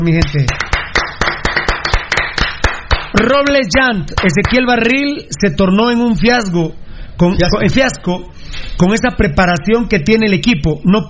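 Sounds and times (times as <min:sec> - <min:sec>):
speech: 0:00.0 - 0:00.6, 0:03.1 - 0:11.0
steady rhythm of sharp loud claps: 0:00.0 - 0:05.1.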